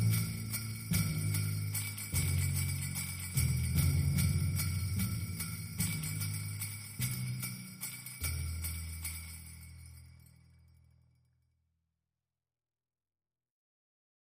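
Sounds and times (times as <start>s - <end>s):
drums: 0.0s - 9.3s.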